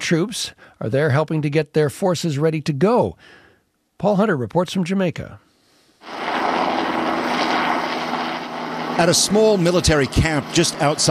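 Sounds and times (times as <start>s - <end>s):
speech: 0.1s - 3.4s, 4.0s - 5.4s, 9.0s - 11.1s
military helicopter flying overhead at a military camp near Kingston airport, Jamaica: 6.0s - 11.1s.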